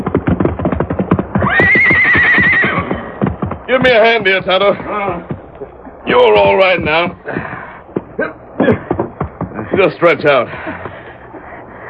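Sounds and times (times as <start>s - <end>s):
horse hooves clattering onto dry ground: 0.0s - 11.0s
speech: 3.7s - 5.3s, 6.1s - 7.5s, 9.8s - 10.7s.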